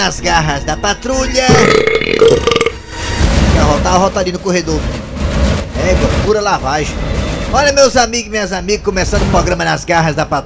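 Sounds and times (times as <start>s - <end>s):
speech: 0.1s - 2.6s, 3.8s - 10.4s
loud burp: 1.5s - 2.8s.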